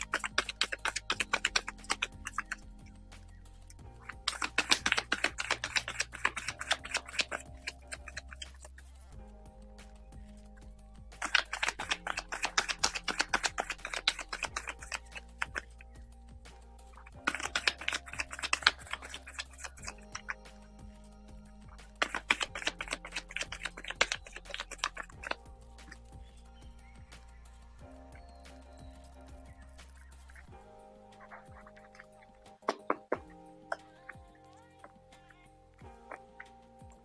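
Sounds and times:
deck of cards being shuffled for a card reading: 0.0s - 3.3s, 4.0s - 9.0s, 11.2s - 15.9s, 16.5s - 20.7s, 21.8s - 26.2s.

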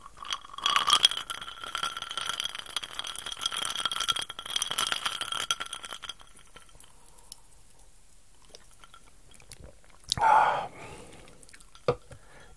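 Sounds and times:
ice cubes clinking in a glass of drink on the rocks: 0.1s - 6.8s.

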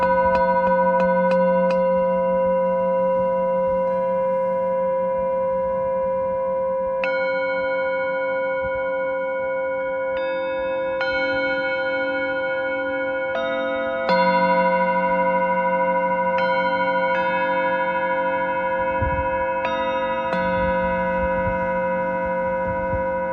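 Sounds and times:
singing bowls ringing: 0.0s - 23.3s.

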